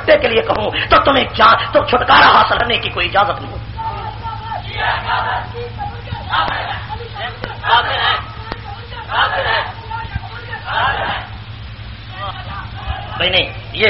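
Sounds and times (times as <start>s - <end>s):
speech: 0.0s - 3.7s, 4.8s - 8.3s, 9.1s - 9.7s, 13.2s - 13.8s
constant low hum: 1.6s - 13.8s
crowd chanting slogans: 3.8s - 13.6s.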